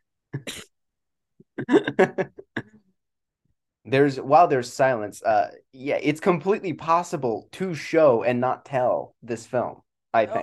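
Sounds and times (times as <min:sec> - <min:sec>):
ill person coughing: 0:00.4 - 0:00.7, 0:01.5 - 0:02.7
speech: 0:01.6 - 0:02.4, 0:03.9 - 0:10.4.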